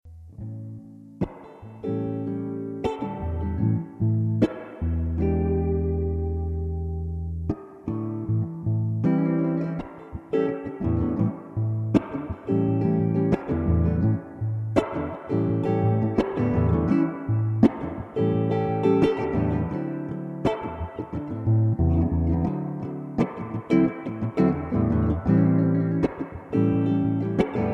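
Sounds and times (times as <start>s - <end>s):
funky modal blues guitar: 0.3s - 27.7s.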